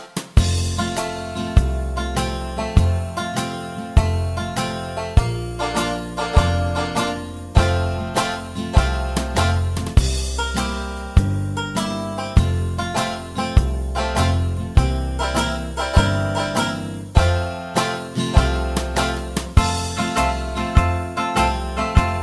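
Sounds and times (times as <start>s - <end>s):
bass line without melody: 0.4s - 17.6s, 18.3s - 22.2s.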